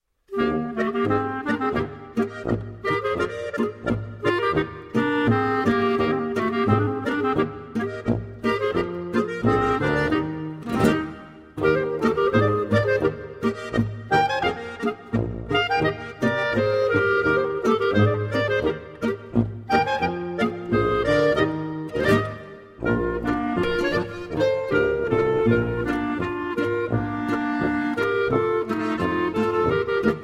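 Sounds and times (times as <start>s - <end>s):
polka music: 0.3s - 30.2s.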